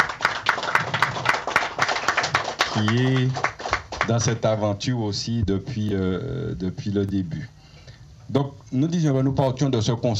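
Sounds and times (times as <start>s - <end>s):
audience applause: 0.0s - 4.3s
speech: 2.8s - 7.6s, 8.3s - 10.1s.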